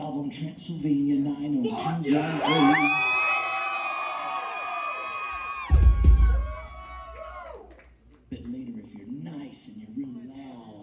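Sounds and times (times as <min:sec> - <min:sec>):
speech: 0:00.3 - 0:03.1
concert crowd cheering and yelling: 0:02.1 - 0:07.8.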